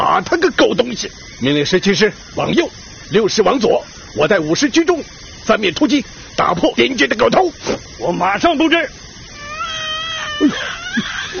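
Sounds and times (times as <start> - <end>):
speech: 0.2 - 9.0, 10.4 - 11.3
infant crying: 9.3 - 11.3.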